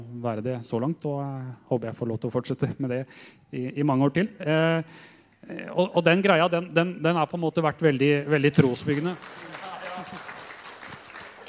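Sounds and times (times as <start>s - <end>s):
speech: 0.2s - 10.2s
audience applause: 8.2s - 11.4s.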